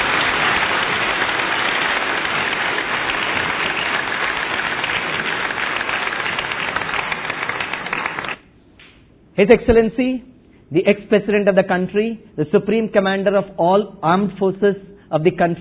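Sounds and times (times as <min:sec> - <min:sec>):
audience clapping: 0:00.0 - 0:08.4
speech: 0:09.4 - 0:15.6.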